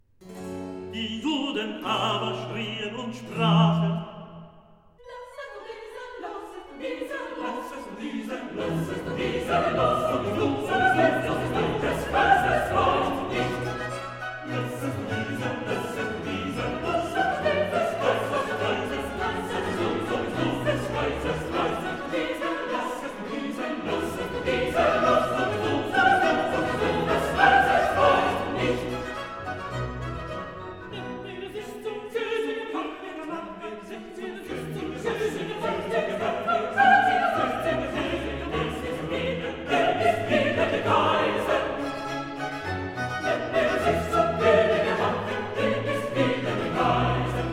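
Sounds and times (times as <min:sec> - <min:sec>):
recitative singing: 0:00.9 - 0:47.5.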